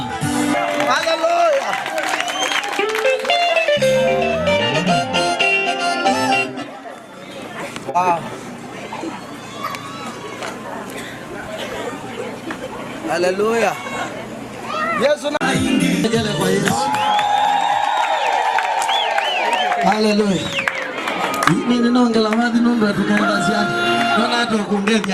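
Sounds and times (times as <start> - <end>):
music: 0.0 - 1.3, 2.6 - 6.7, 15.4 - 16.8, 22.7 - 24.4
church congregation chatter: 0.0 - 25.1
church congregation applauding: 0.5 - 3.9, 16.8 - 25.1
speech: 13.2 - 13.9, 15.0 - 17.0, 20.0 - 20.6, 21.7 - 25.1.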